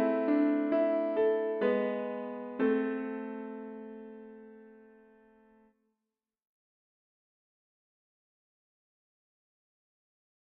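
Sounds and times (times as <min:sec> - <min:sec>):
piano: 0:00.0 - 0:05.6.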